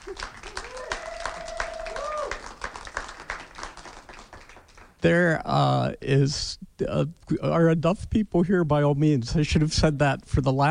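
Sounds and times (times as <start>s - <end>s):
audience clapping: 0.0s - 5.0s
person cheering: 0.2s - 2.6s
speech: 5.0s - 10.7s.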